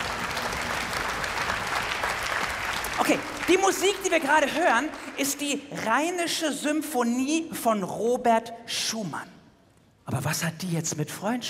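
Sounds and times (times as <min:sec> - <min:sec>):
audience applause: 0:00.0 - 0:05.6
speech: 0:03.0 - 0:09.4, 0:10.1 - 0:11.4.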